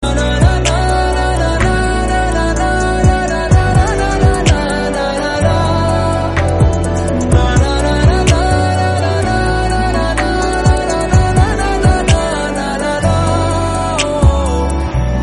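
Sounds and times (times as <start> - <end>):
romantic background music: 0.0 - 15.2.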